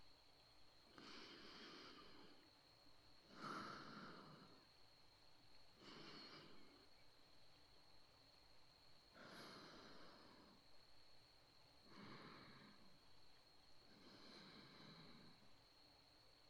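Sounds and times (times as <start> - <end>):
breathing in the right ear: 0.9 - 2.6, 3.2 - 4.7, 5.8 - 7.0, 9.1 - 10.8, 11.8 - 15.9.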